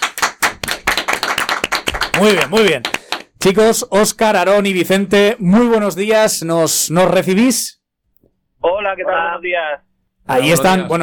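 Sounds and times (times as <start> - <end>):
applause, hands clapping: 0.0 - 3.5
speech: 2.2 - 7.8, 8.6 - 11.0.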